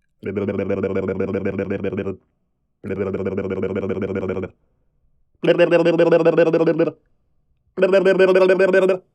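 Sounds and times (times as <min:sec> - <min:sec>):
cartoon tongue and lips taunt: 0:00.2 - 0:02.2, 0:02.8 - 0:04.6, 0:05.4 - 0:07.0, 0:07.8 - 0:09.1.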